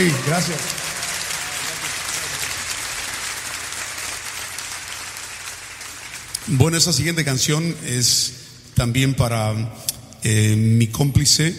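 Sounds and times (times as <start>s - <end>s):
speech: 0.0s - 0.8s, 6.5s - 11.5s
audience applause: 0.0s - 7.1s.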